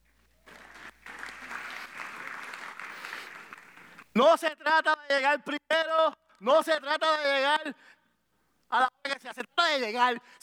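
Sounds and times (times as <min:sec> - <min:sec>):
audience applause: 0:00.4 - 0:04.1
speech: 0:04.2 - 0:08.0, 0:08.7 - 0:10.4.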